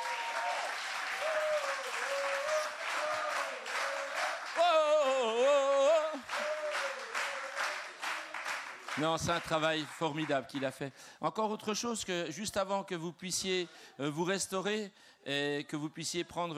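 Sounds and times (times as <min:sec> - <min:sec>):
audience applause: 0:00.0 - 0:10.6
speech: 0:09.0 - 0:16.5.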